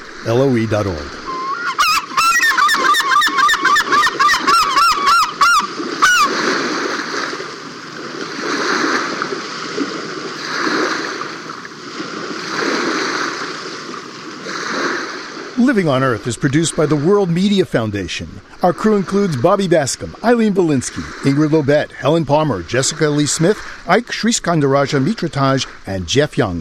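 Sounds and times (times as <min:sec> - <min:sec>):
speech: 0:00.2 - 0:01.2, 0:15.7 - 0:26.5
herring gull calling: 0:01.1 - 0:06.5
herring gull splashing while bathing: 0:01.1 - 0:15.6.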